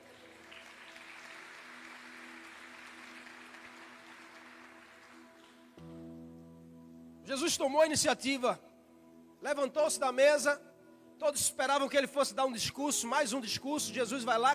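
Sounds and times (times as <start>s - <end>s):
audience applause: 0.0s - 5.8s
speech: 7.3s - 8.7s, 9.4s - 14.5s.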